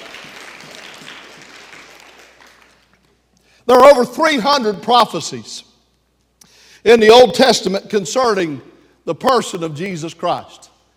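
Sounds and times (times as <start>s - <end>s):
crowd applause: 0.0s - 2.9s
speech: 3.7s - 5.7s, 6.8s - 10.7s.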